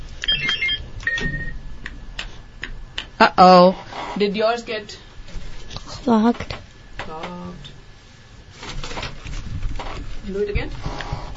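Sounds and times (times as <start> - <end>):
quiz buzzers sounding short high electronic beeps and a sustained tone: 0.3 - 1.6
speech: 3.2 - 5.0, 6.0 - 7.7, 10.3 - 11.0.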